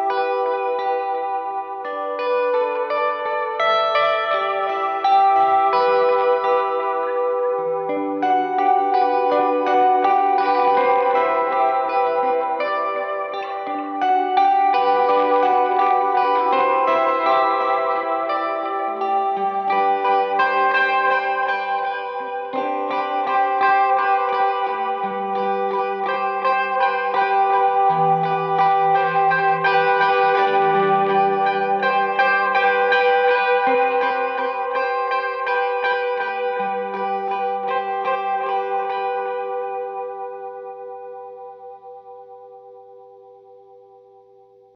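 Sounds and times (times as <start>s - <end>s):
mandolin with wet effects: 0.2s - 41.3s.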